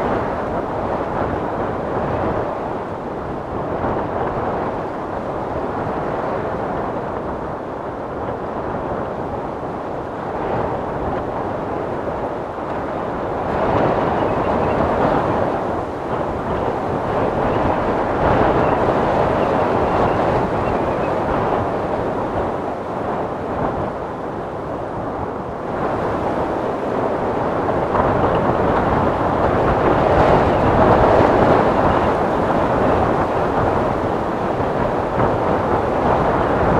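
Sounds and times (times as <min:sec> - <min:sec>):
storm wind: 0:00.0 - 0:36.7.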